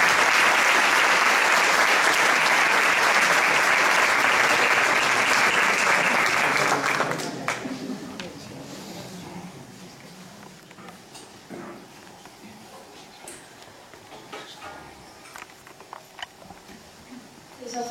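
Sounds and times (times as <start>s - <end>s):
audience applause welcoming a singer: 0.0s - 8.0s.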